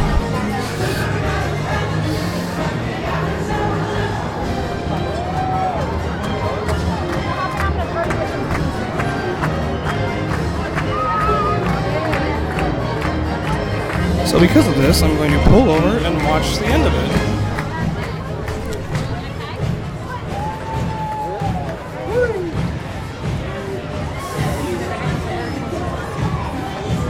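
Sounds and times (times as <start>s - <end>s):
crowd of many people moving and chattering: 0.0s - 27.0s
speech: 14.4s - 17.3s.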